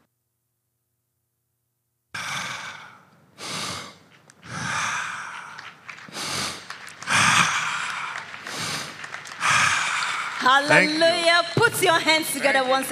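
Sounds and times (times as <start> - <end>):
man breathing deeply after a healing: 2.2 - 10.4
speech: 10.5 - 12.9.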